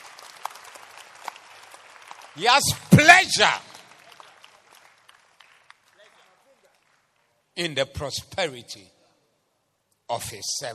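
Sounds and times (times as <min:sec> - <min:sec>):
audience clapping: 0:00.0 - 0:07.4
speech: 0:02.4 - 0:03.7, 0:07.6 - 0:09.0, 0:10.1 - 0:10.7.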